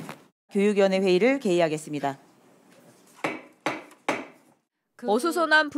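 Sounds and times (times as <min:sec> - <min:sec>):
speech: 0:00.5 - 0:02.3, 0:05.0 - 0:05.7
gavel striking to open meeting: 0:03.2 - 0:04.5.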